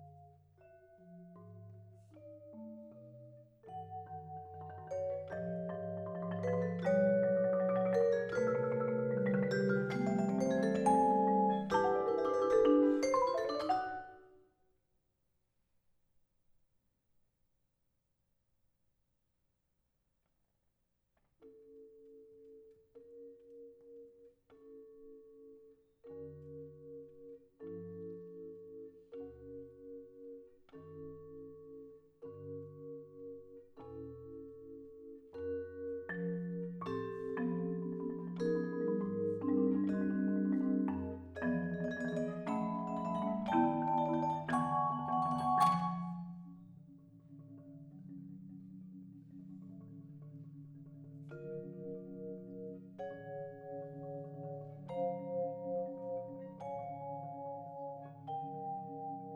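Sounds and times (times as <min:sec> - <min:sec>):
four mallets playing: 0:00.0 - 0:14.3, 0:34.2 - 0:47.1, 0:51.2 - 0:59.3.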